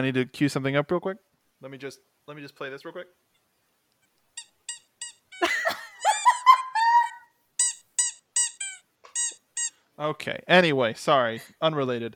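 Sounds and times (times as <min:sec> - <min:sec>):
speech: 0:00.0 - 0:03.3, 0:10.0 - 0:12.1
squeaky chew toy squeaking: 0:04.0 - 0:09.8.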